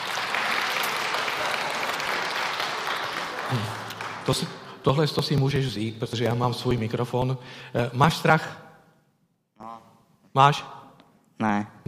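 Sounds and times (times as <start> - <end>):
crowd clapping: 0.0 - 4.9
speech: 3.5 - 8.6, 10.4 - 10.8, 11.4 - 11.8.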